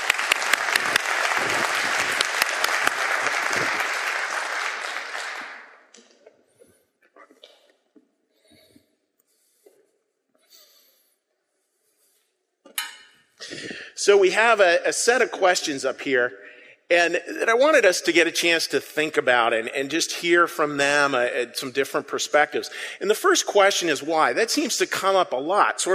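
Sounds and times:
audience applause: 0:00.0 - 0:05.8
speech: 0:14.1 - 0:25.9.

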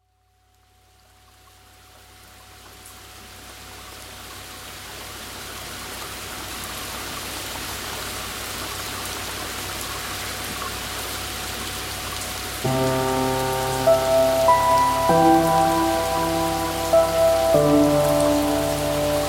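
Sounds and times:
calm rain with binaural beats: 0:00.0 - 0:19.2
binaural beats: 0:12.7 - 0:19.2.

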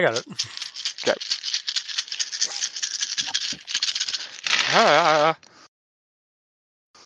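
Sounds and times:
speech: 0:00.0 - 0:01.4, 0:04.8 - 0:05.4
dice rattling: 0:00.0 - 0:05.2.

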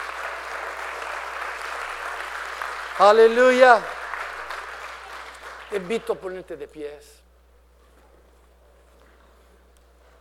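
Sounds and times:
audience applause: 0:00.0 - 0:06.3
speech: 0:03.0 - 0:03.9, 0:05.7 - 0:07.2.

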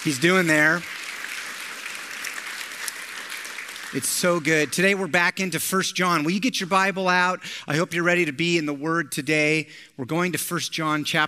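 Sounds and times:
speech: 0:00.0 - 0:01.0, 0:03.9 - 0:11.2
audience round of applause: 0:00.0 - 0:04.9.

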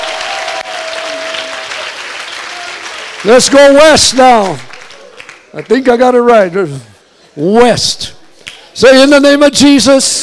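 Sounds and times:
audience clapping: 0:00.0 - 0:06.0
speech: 0:03.2 - 0:04.7, 0:05.5 - 0:08.2, 0:08.8 - 0:10.2.

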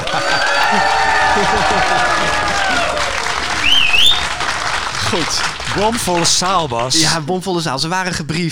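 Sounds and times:
laughter: 0:00.0 - 0:07.2
theater audience applause: 0:00.0 - 0:07.2
rising whistle: 0:02.9 - 0:04.4
speech: 0:05.1 - 0:08.4.

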